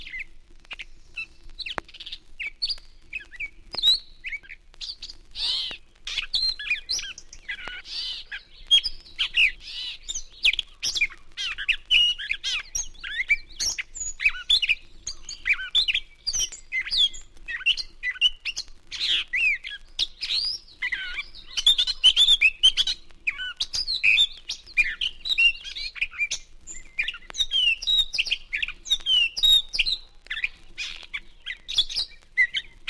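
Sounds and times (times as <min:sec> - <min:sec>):
catbird song with squeaks and catcalls: 0:02.0 - 0:32.8.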